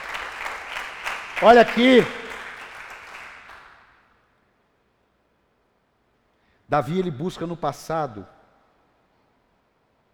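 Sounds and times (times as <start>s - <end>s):
crowd applauding: 0.0s - 4.0s
speech: 1.4s - 2.2s, 6.7s - 8.4s.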